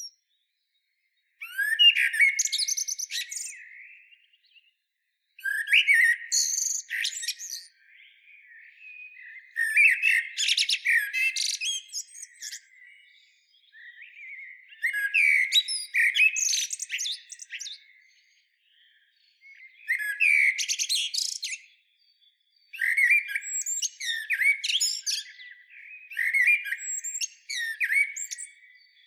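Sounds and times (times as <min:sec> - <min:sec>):
common blackbird song with warbles and twitters: 0:00.0 - 0:29.0.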